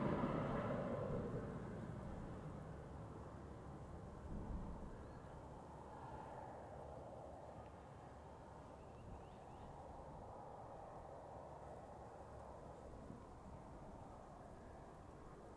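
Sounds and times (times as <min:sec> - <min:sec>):
cars passing fast on the Sao Jorge road: 0:00.0 - 0:02.7
light wind: 0:00.0 - 0:15.5.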